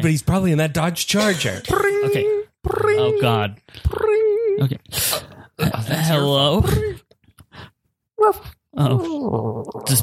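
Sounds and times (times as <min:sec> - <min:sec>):
speech: 0:00.0 - 0:07.0, 0:07.6 - 0:10.0
person imitating a dog whining on phone: 0:01.6 - 0:04.9, 0:05.6 - 0:07.1, 0:08.2 - 0:10.0.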